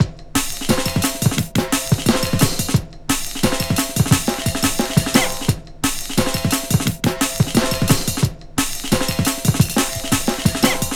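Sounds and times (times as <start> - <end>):
rugged drum and bass breakbeat: 0.0 - 10.9.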